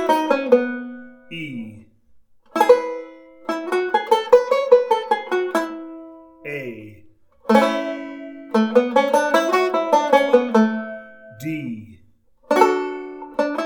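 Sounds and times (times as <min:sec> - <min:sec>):
banjo playing: 0:00.0 - 0:01.4, 0:02.5 - 0:06.4, 0:07.3 - 0:11.3, 0:12.4 - 0:13.6.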